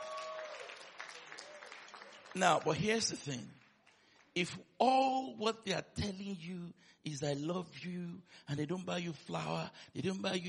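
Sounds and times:
applause: 0.0s - 4.5s
speech: 2.3s - 3.6s, 4.4s - 10.4s.

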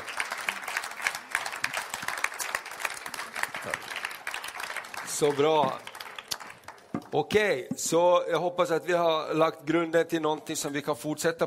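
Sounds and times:
audience applause for guests: 0.0s - 7.1s
speech: 5.2s - 5.9s, 7.1s - 11.4s.

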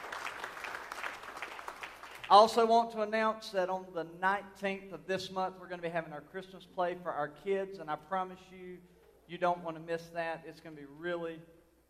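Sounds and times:
audience clapping in praise: 0.0s - 2.6s
speech: 2.3s - 11.6s.

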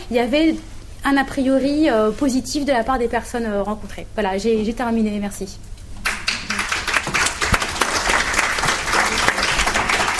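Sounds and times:
speech: 0.1s - 5.7s
audience applause: 6.0s - 10.1s.

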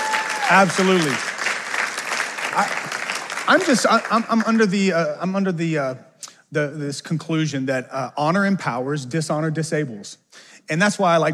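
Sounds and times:
audience clapping hands: 0.0s - 4.9s
speech: 0.5s - 1.3s, 2.6s - 11.3s.

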